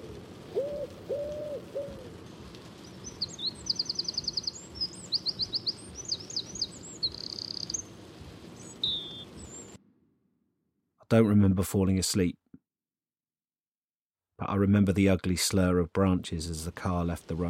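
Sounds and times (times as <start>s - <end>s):
recorded birdsong played from cassette: 0.6s - 9.8s
speech: 11.1s - 12.4s, 14.6s - 17.4s.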